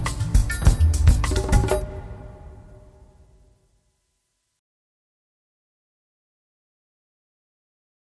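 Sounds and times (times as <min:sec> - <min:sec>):
night hunt dramatic music: 0:00.4 - 0:03.4.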